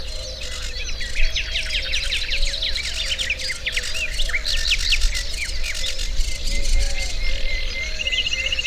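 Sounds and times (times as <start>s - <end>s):
birds at the Hortobágy fish ponds: 0.0s - 8.6s.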